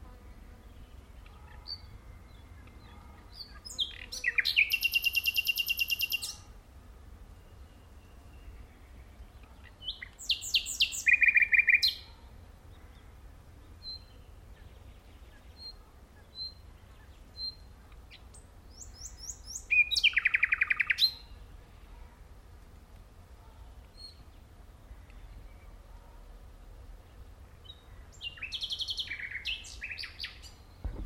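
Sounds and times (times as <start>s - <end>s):
Common nightingale song: 0.7s - 6.5s, 7.2s - 22.2s, 27.0s - 31.0s
low rumble: 30.8s - 31.0s.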